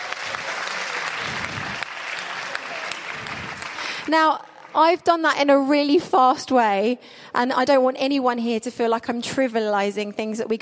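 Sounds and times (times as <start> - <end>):
audience applause: 0.0 - 4.8
speech: 4.1 - 10.6.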